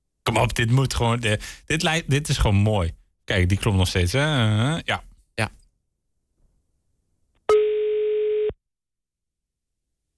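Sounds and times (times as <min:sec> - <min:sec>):
speech: 0:00.3 - 0:05.6
telephone ringing tone while calling someone back: 0:07.5 - 0:08.6.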